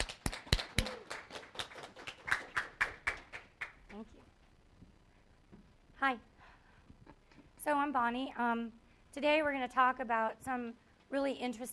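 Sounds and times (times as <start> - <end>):
audience applause welcoming a speaker: 0.0 - 4.0
speech: 6.0 - 6.3, 7.7 - 11.7.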